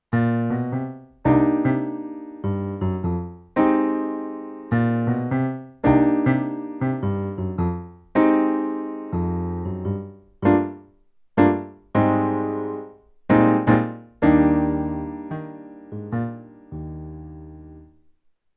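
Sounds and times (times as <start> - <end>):
Alesis Recital 61 bright piano: 0.0 - 18.3.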